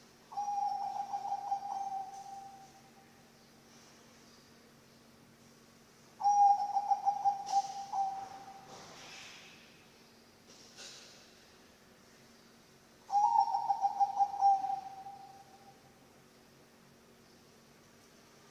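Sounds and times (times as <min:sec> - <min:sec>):
Zebra dove song: 0:00.3 - 0:02.8, 0:06.2 - 0:08.8, 0:13.1 - 0:15.6.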